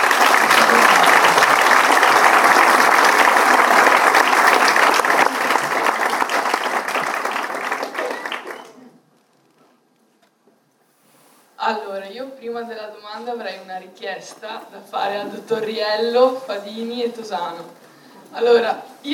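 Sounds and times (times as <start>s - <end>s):
audience applause: 0.0s - 8.8s
speech: 12.6s - 19.1s.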